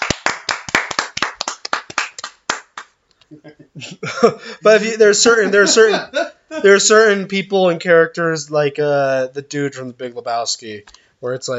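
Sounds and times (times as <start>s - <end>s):
people clapping hands: 0.0s - 3.0s
speech: 3.3s - 11.5s
laughter: 3.4s - 6.9s.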